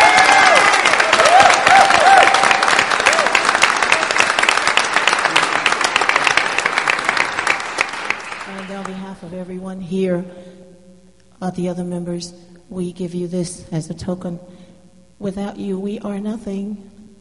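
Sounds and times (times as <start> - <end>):
audience applause: 0.0 - 9.0
speech: 10.1 - 10.4, 11.4 - 14.6, 15.2 - 17.0.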